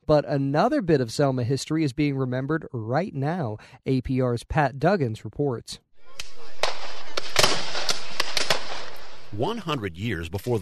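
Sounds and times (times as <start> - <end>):
speech: 0.1 - 6.6, 9.3 - 10.6
gunshots from a 2013 Civil War battle reenactment in Selma: 6.0 - 9.6.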